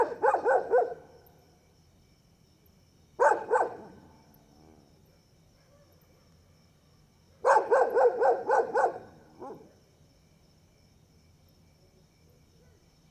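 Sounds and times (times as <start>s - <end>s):
dogs barking at night: 0.0s - 1.1s, 3.2s - 4.1s, 5.6s - 6.4s, 7.4s - 9.7s.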